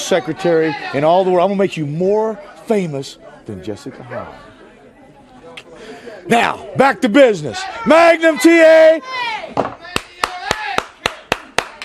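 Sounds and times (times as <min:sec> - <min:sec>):
speech: 0:00.1 - 0:04.5, 0:06.3 - 0:09.8
hand clapping: 0:09.8 - 0:11.8.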